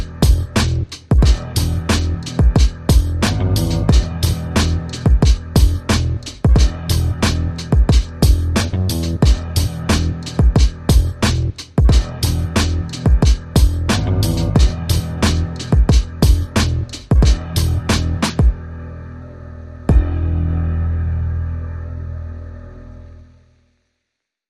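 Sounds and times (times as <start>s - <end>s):
drums: 0.0s - 18.6s
bass: 0.0s - 23.6s.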